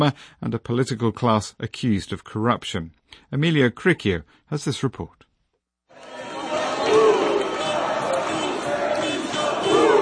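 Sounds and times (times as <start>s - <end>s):
speech: 0.0s - 5.2s
protest crowd in the streets of Tirana, Albania chanting and shouting against Prime Minister Edi Rama: 5.9s - 9.9s.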